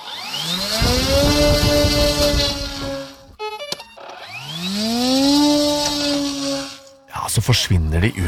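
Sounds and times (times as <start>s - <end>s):
military drones launching, buzzing like string trimmers: 0.0s - 3.6s, 4.2s - 7.0s
speech: 7.4s - 8.2s.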